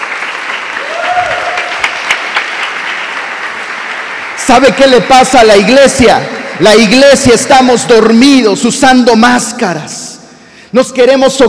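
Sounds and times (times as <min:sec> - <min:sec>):
audience applause: 0:00.0 - 0:05.5
speech: 0:04.5 - 0:10.0, 0:10.7 - 0:11.4.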